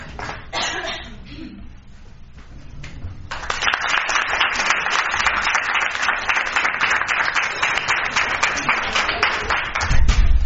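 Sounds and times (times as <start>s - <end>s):
crowd clapping: 0.1s - 0.5s, 3.2s - 10.3s.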